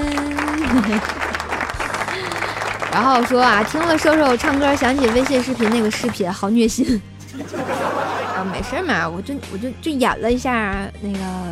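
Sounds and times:
applause: 0:00.0 - 0:06.2
laughter: 0:00.3 - 0:05.9, 0:07.3 - 0:09.2
speech: 0:00.8 - 0:01.2, 0:02.9 - 0:11.5.

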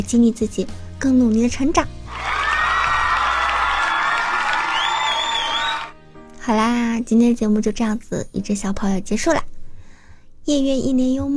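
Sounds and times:
speech: 0:00.0 - 0:02.3, 0:06.5 - 0:09.5, 0:10.4 - 0:11.3
cheering crowd sound effect: 0:02.1 - 0:06.0.

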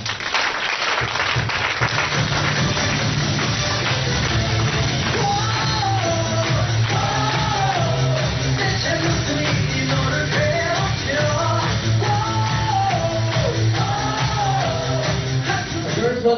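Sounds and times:
crowd applause: 0:00.0 - 0:15.6.

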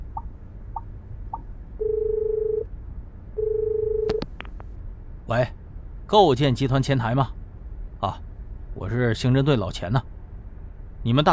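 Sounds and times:
telephone dialing tones: 0:03.4 - 0:04.2
speech: 0:05.3 - 0:07.4, 0:08.0 - 0:08.2, 0:08.8 - 0:10.1, 0:11.0 - 0:11.3.

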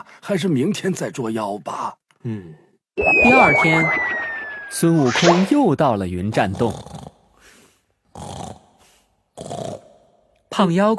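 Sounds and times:
speech: 0:00.3 - 0:07.1, 0:10.6 - 0:10.9
heavy rasping snores: 0:08.2 - 0:08.7, 0:09.4 - 0:10.0.

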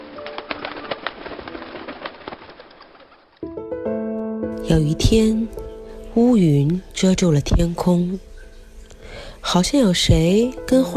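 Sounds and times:
speech: 0:04.7 - 0:05.6, 0:06.2 - 0:08.3, 0:09.4 - 0:10.9
bird calling: 0:06.8 - 0:09.7.

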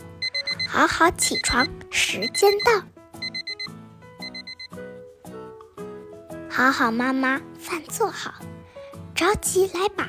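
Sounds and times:
alarm clock ringing: 0:00.2 - 0:01.7, 0:02.3 - 0:04.7
speech: 0:00.7 - 0:03.0, 0:06.6 - 0:08.6, 0:09.2 - 0:10.0.

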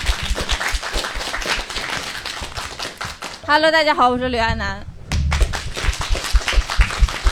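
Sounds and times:
audience applause: 0:00.0 - 0:03.4, 0:05.3 - 0:07.3
speech: 0:03.5 - 0:04.9.

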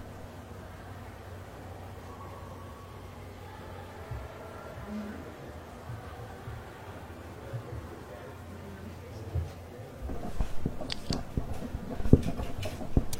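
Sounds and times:
faint murmur of voices in library: 0:00.0 - 0:13.1
library steady low hum: 0:00.0 - 0:13.1
sharp clicks and rustling taps like keys and handled paper: 0:10.0 - 0:13.1.

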